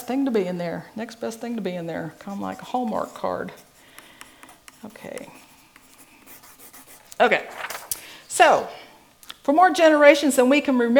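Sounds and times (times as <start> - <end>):
speech: 0.1 - 3.7, 4.8 - 5.4, 7.2 - 7.6, 8.4 - 8.8, 9.5 - 10.9
pen scratching on paper while handwriting: 1.6 - 7.2.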